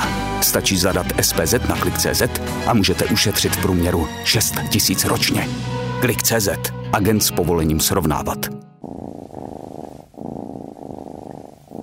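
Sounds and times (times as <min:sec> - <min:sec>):
speech: 0:00.4 - 0:08.7
cat purring: 0:08.8 - 0:11.8.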